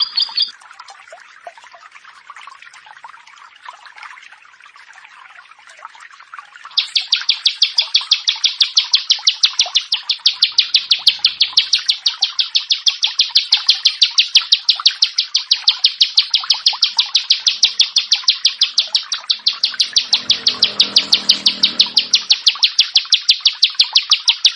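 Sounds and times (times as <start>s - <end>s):
bar-winged prinia rattling call: 0.0s - 0.5s, 6.7s - 24.5s.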